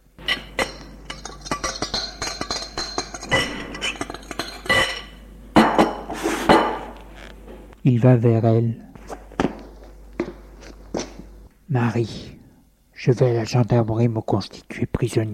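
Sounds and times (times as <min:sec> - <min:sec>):
dishes and cutlery clinking: 0:00.2 - 0:07.0
speech: 0:07.9 - 0:08.9, 0:11.7 - 0:12.4, 0:13.0 - 0:15.3.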